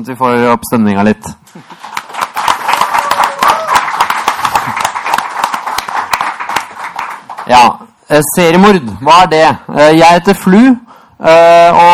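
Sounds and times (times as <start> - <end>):
speech: 0.0 - 1.8, 7.5 - 11.9
audience applause: 1.6 - 7.6.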